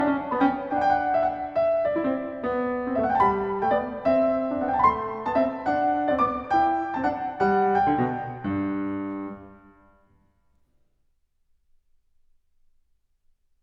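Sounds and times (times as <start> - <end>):
harpsichord piece for two manuals in gigue tempo: 0.0 - 9.9.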